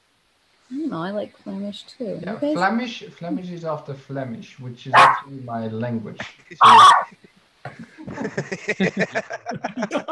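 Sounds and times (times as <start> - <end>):
speech: 0.7 - 7.2, 8.2 - 10.1
dog barking in high-pitched yaps: 4.9 - 5.3, 6.6 - 7.1
laughter: 7.7 - 10.1.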